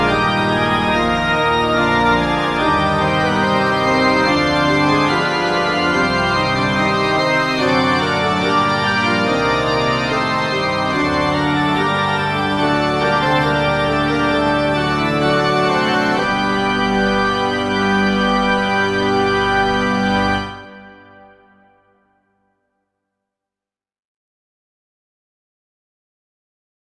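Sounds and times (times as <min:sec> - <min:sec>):
classical fantasia in G minor: 0:00.0 - 0:21.4.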